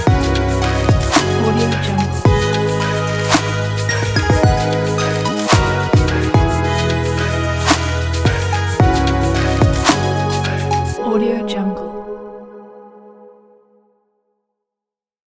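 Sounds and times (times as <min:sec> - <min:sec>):
groovy drum kit beat: 0:00.0 - 0:11.0.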